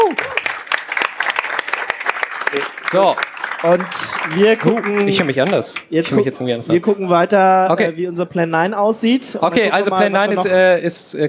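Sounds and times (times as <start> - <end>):
audience applause: 0.0 - 6.0
speech: 2.5 - 11.2.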